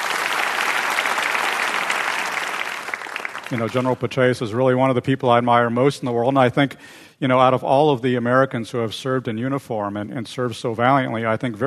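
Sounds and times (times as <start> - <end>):
debate audience applause: 0.0 - 4.0
speech: 3.5 - 11.6.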